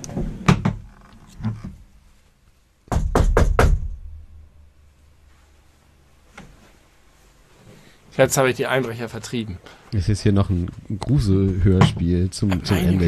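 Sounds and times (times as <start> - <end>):
knocking on a door: 2.9 - 4.0
speech: 8.2 - 13.0.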